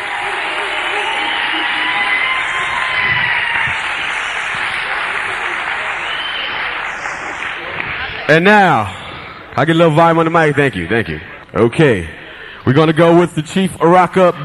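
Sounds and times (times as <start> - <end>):
audience applause: 0.0 - 9.2
speech: 8.3 - 9.0, 9.6 - 14.4.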